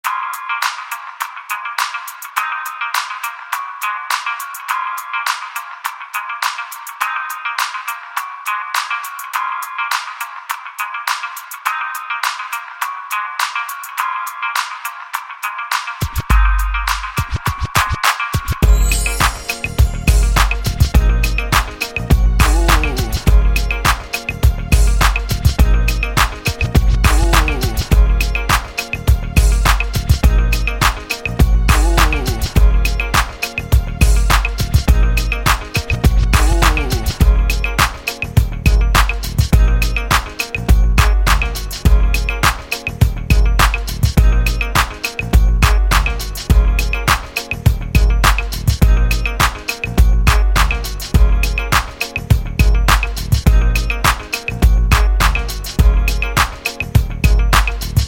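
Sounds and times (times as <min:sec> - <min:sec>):
instrumental music: 0:00.0 - 0:58.0.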